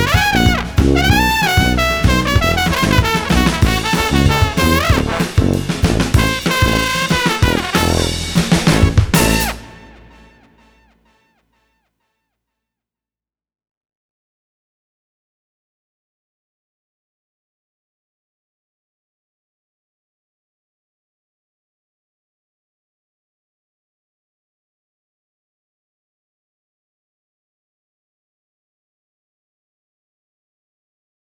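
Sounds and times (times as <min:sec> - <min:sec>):
bouncy street brass music: 0:00.0 - 0:10.9.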